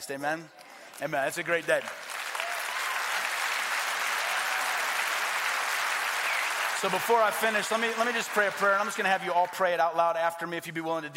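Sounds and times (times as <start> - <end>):
speech: 0.0 - 2.0, 6.8 - 11.1
crowd applause: 1.8 - 9.6.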